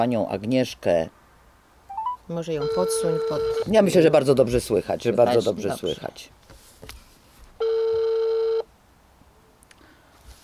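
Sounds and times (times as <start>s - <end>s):
speech: 0.0s - 1.2s, 2.3s - 7.0s
electronic telephone ringback tone: 1.9s - 3.7s, 7.6s - 8.6s.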